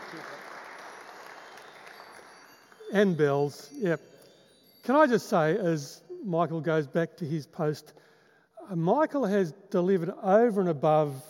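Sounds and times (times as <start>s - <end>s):
audience clapping: 0.0s - 2.9s
speech: 2.9s - 4.2s, 4.8s - 8.1s, 8.7s - 11.2s.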